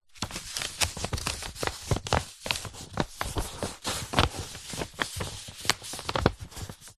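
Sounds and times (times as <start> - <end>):
A4 paper sheets handled flat with gentle rustle: 0.1 - 6.9.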